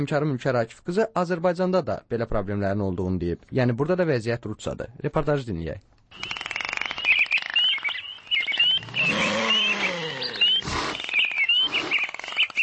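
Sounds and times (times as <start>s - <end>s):
speech: 0.0s - 6.4s
animals and birds calling at the Baku zoo: 6.1s - 12.6s.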